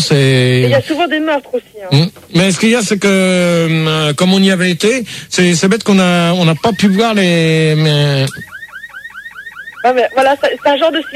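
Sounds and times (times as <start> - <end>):
speech: 0.0 - 8.5, 9.8 - 11.1
siren wailing: 6.6 - 11.1.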